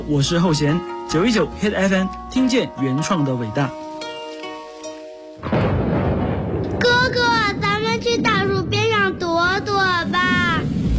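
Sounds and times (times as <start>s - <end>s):
speech: 0.1s - 3.8s
rain: 2.4s - 10.9s
thunder: 5.4s - 9.2s.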